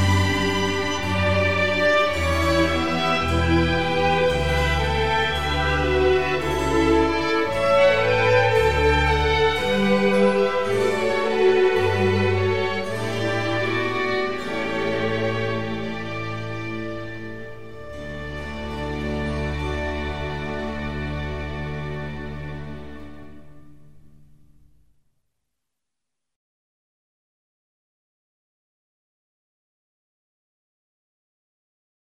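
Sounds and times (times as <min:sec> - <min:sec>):
orchestral piece: 0:00.0 - 0:24.6.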